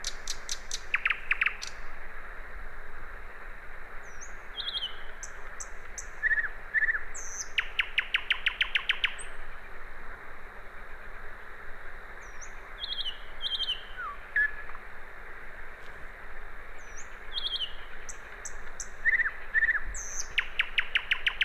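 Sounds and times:
common nightingale song Luscinia megarhynchos: 0.0s - 1.9s, 4.0s - 9.6s, 12.2s - 14.7s, 16.7s - 21.4s.

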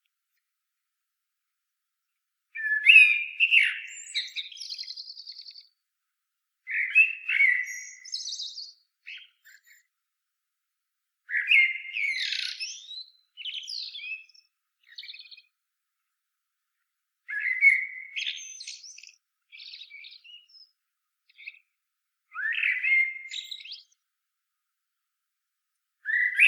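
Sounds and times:
common blackbird song: 2.5s - 5.9s, 6.6s - 10.0s, 11.2s - 15.6s, 17.2s - 24.1s, 26.0s - 26.4s.

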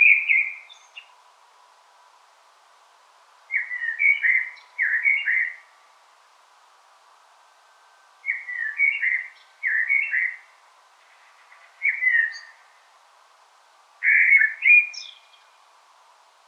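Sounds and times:
common blackbird song: 0.0s - 1.2s, 3.5s - 5.9s, 8.2s - 13.0s, 14.0s - 15.7s.

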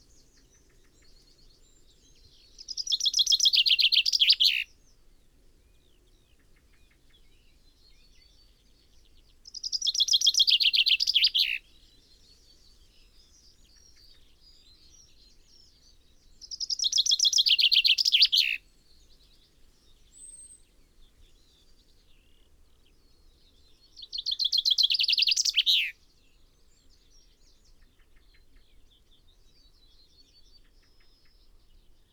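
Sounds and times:
common chaffinch singing: 0.0s - 4.8s, 6.4s - 22.4s, 23.2s - 26.0s.

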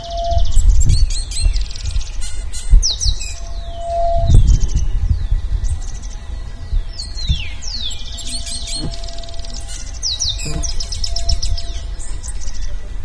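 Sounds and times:
bird singing: 0.0s - 13.0s
low rumble: 0.0s - 13.0s
thumps: 8.2s - 11.6s.

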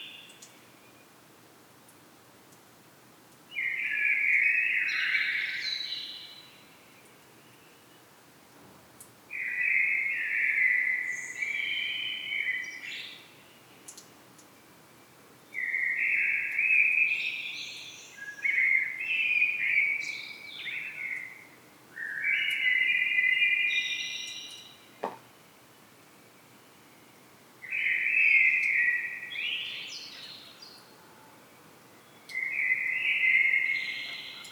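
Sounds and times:
common blackbird singing: 3.5s - 6.5s, 9.3s - 13.2s, 15.5s - 25.2s, 27.7s - 30.9s, 32.1s - 34.4s.

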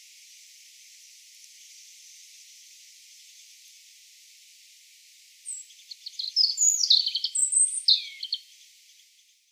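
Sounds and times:
faint background hiss: 0.0s - 5.9s
European robin song: 5.5s - 8.7s.

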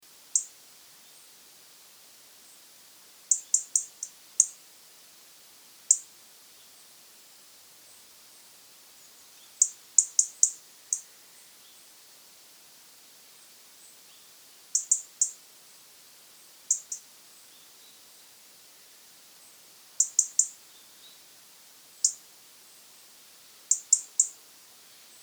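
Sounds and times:
faint steady hiss: 0.0s - 25.2s
European robin tick calls: 3.3s - 4.6s, 5.9s - 6.1s, 9.6s - 11.1s, 14.7s - 15.4s, 16.7s - 17.1s, 20.0s - 20.6s, 23.7s - 24.4s.

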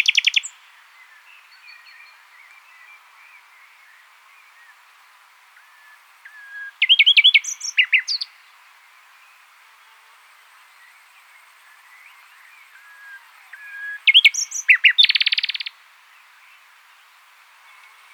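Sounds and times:
common nightingale Luscinia megarhynchos song: 0.0s - 18.1s.

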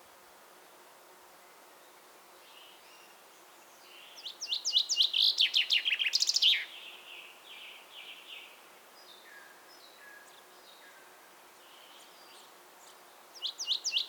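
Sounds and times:
common chaffinch Fringilla coelebs singing: 3.9s - 6.7s, 13.4s - 14.0s.

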